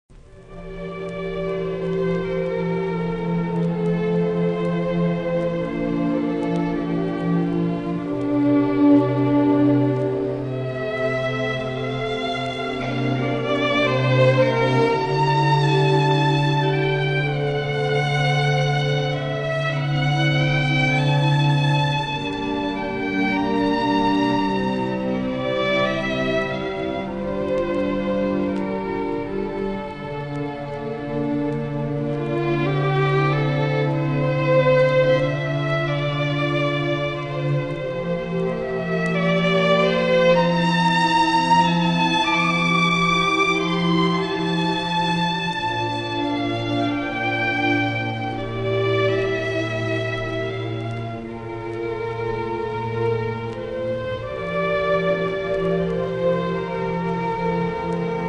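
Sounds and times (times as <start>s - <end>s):
strings playing an elegy: 0.1s - 58.2s.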